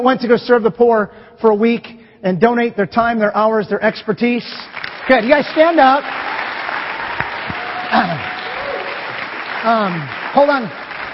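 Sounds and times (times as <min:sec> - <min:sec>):
speech: 0:00.0 - 0:06.3, 0:07.9 - 0:08.3, 0:09.6 - 0:10.8
audience applause: 0:04.7 - 0:11.1.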